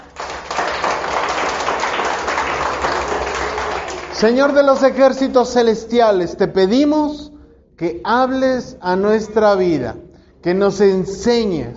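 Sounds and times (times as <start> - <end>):
audience applause: 0.0 - 4.9
speech: 4.2 - 11.7.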